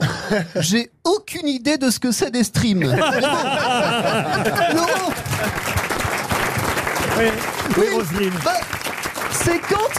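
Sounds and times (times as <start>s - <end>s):
speech: 0.3s - 5.6s, 7.2s - 8.8s, 9.4s - 9.9s
audience laughter: 2.8s - 5.8s
audience applause: 4.1s - 9.9s.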